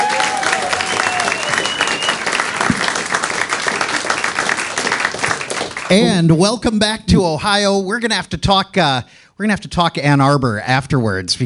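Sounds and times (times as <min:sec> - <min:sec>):
concert audience in Ohio applauding: 0:00.0 - 0:06.3
thin gliding whistle: 0:00.7 - 0:02.6
speech: 0:05.9 - 0:11.4.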